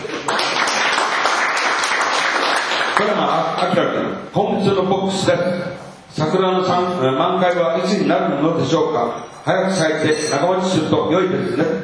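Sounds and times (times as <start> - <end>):
applause from a group: 0.0 - 3.2
speech: 3.0 - 11.8.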